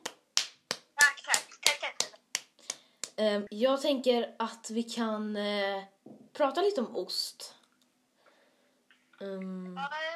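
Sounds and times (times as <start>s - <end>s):
applause, hands clapping: 0.0s - 3.2s
speech: 3.2s - 7.6s, 9.2s - 10.1s.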